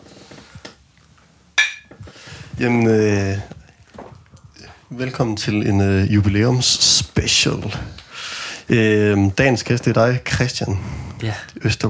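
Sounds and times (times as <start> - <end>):
glasses clinking in a toast: 1.6 - 2.0
speech: 2.6 - 3.6, 4.9 - 8.0, 8.7 - 11.8.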